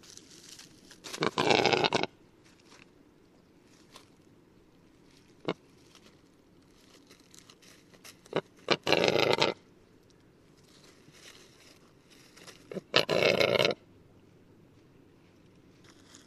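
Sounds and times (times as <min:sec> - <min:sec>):
rackelhahn black grouse capercaillie hybrid rasping: 0:01.1 - 0:02.1, 0:08.2 - 0:09.6, 0:12.6 - 0:13.8.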